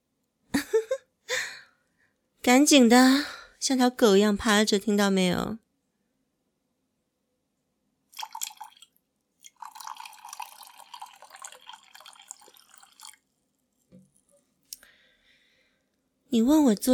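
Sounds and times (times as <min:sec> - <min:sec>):
speech: 0:02.5 - 0:05.6, 0:16.4 - 0:16.9
water being poured onto a floor: 0:08.2 - 0:13.3
faint drips: 0:08.2 - 0:14.9.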